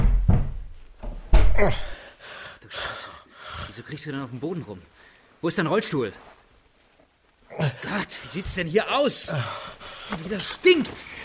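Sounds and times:
door being kicked in: 0.0 - 1.8
speech: 1.6 - 2.0, 3.8 - 6.3, 7.6 - 11.2.

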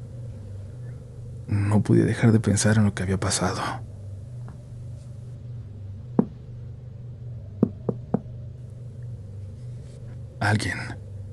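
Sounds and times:
low hum: 0.0 - 11.3
speech: 1.5 - 3.9, 10.4 - 11.0
knocking on a bathroom door: 6.2 - 6.4, 7.6 - 8.3.

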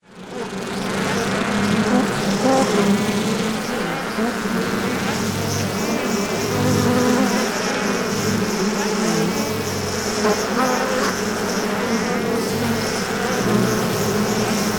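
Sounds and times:
honey bees buzzing in an active hive: 0.1 - 14.7.

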